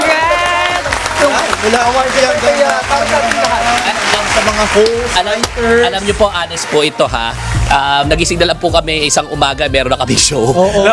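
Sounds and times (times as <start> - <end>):
audience applause at an award celebration event: 0.0 - 6.7
speech: 1.6 - 10.9.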